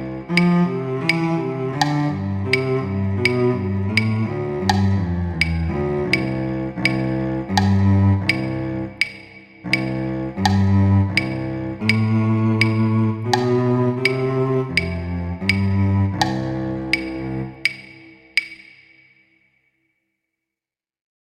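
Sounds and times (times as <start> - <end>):
cello duet: 0.0 - 18.5.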